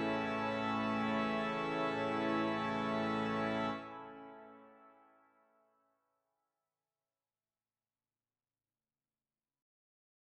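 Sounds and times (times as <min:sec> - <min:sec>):
organ: 0:00.0 - 0:04.8.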